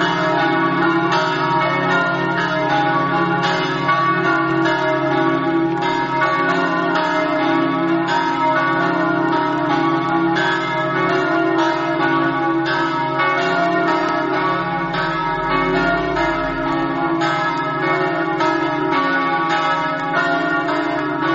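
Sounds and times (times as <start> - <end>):
church bells ringing in Flaibano: 0.0 - 21.3.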